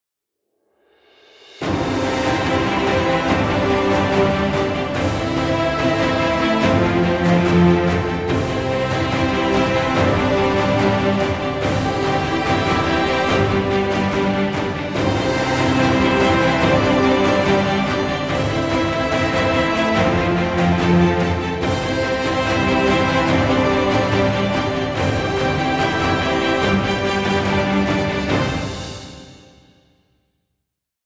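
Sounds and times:
inspirational sport epic music: 1.5 - 29.8.

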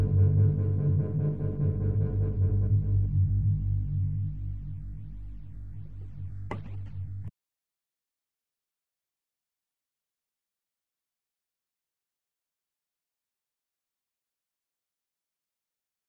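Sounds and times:
ambient instrumental music: 0.0 - 7.3.

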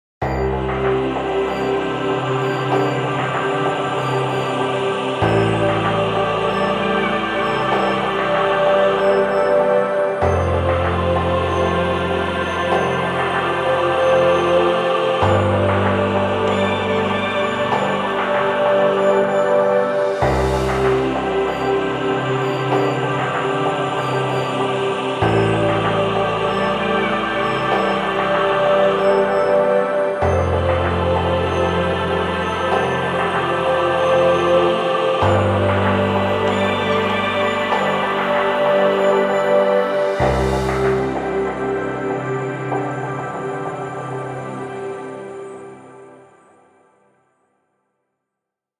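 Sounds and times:
ambient music: 0.2 - 47.0.

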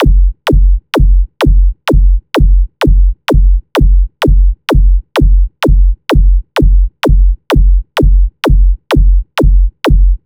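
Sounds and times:
shoe heel beat at 128 bpm: 0.0 - 10.2.

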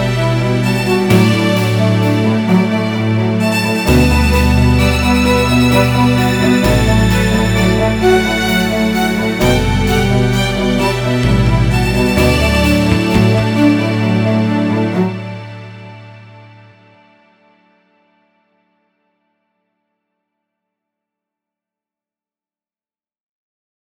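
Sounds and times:
musical theme: 0.0 - 18.4.

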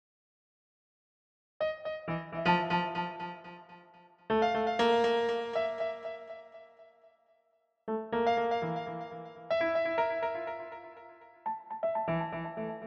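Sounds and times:
piano: 1.6 - 6.9, 7.9 - 12.8.

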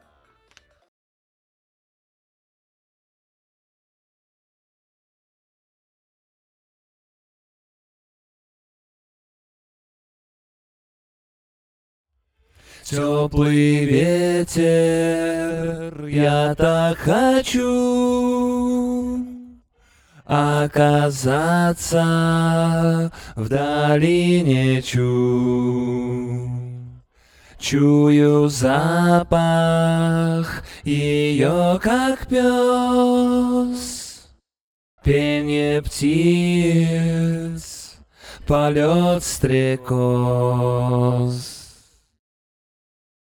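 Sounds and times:
a cappella singing: 12.6 - 34.4, 35.0 - 42.2.

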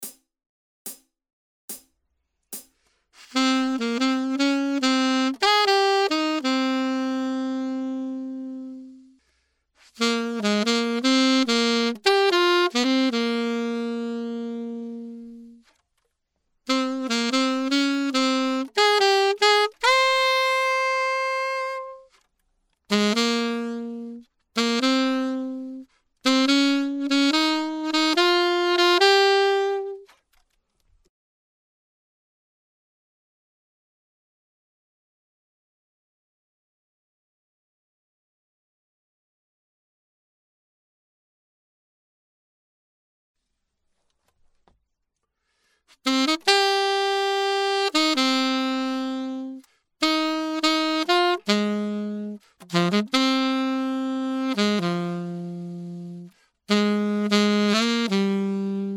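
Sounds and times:
main saxophone solo: 3.2 - 9.2, 9.9 - 15.7, 16.7 - 22.2, 22.9 - 30.1, 45.9 - 58.9.

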